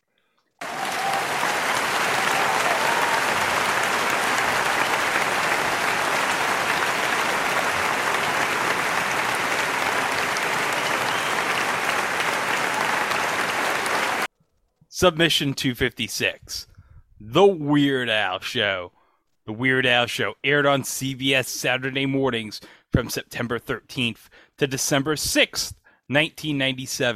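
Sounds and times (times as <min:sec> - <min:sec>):
loud audience applause: 0:00.6 - 0:14.3
speech: 0:15.0 - 0:27.1.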